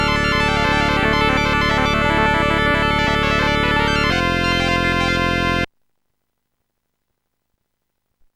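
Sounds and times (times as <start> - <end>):
contemporary music: 0.0 - 5.7.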